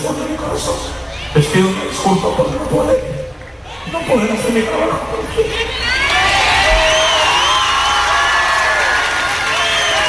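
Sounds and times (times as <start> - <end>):
speech: 0.0 - 3.2, 3.9 - 6.4
high shouts and whoops: 5.5 - 10.0
concert crowd cheering and applauding: 5.6 - 10.0.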